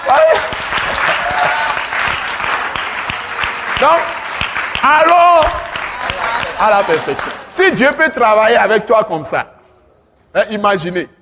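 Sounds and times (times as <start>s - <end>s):
congregation applause in praise of God during a French-language sermon: 0.0s - 8.1s
speech: 3.8s - 4.2s, 4.8s - 5.7s, 6.6s - 9.6s, 10.3s - 11.2s.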